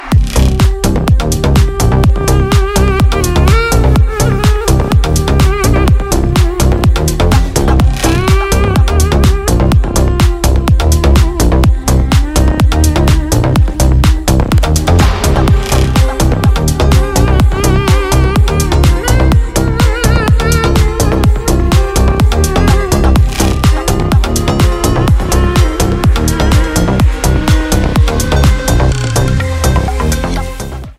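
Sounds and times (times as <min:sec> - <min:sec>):
background music ringtone: 0:00.0 - 0:30.9.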